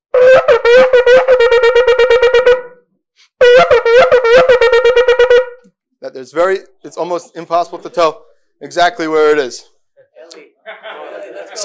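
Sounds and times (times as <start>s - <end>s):
shofar blast with shevarim running into teruah: 0.1s - 2.8s, 3.4s - 5.6s
speech: 6.2s - 9.7s
laughter: 10.6s - 11.6s.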